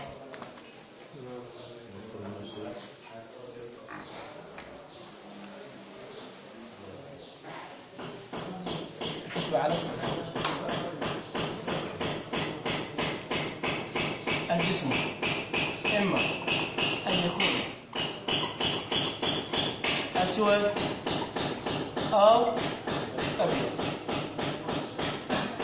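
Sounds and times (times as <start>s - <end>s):
speech: 2.6s - 3.3s, 20.4s - 21.0s
chalk tapping on a blackboard while writing: 8.0s - 25.6s.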